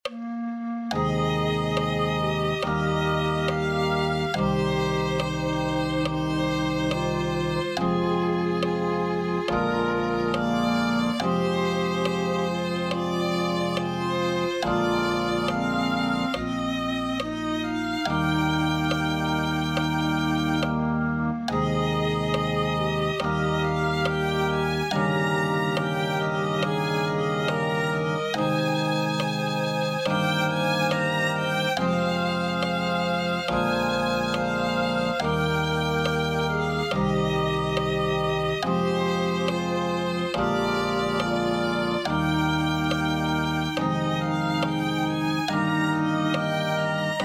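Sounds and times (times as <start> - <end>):
violin: 0.0 - 47.2.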